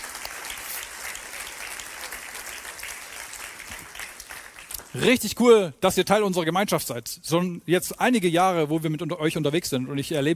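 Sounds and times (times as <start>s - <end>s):
audience applause: 0.0s - 5.3s
speech: 5.0s - 10.3s.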